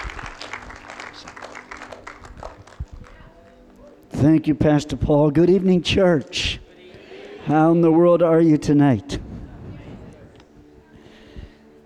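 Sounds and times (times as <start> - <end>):
church audience applauding a guest speaker at a Sunday night service: 0.0 - 3.8
speech: 4.2 - 6.6, 7.5 - 9.2.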